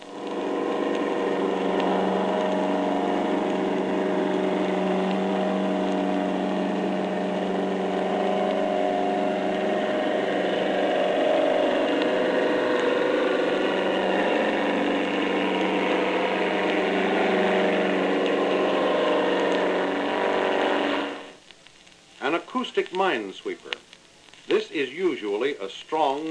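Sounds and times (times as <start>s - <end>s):
fast, even torpedo propeller beat: 0.0s - 21.4s
German air-driven torpedo roaring: 0.0s - 21.5s
speech: 22.6s - 23.9s, 24.6s - 26.2s.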